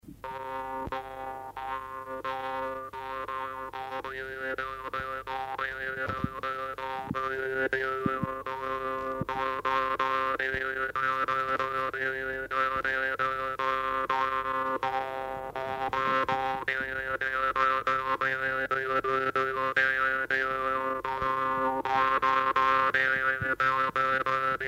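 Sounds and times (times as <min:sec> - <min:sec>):
dance tune on a jaw harp: 0:00.2 - 0:24.6.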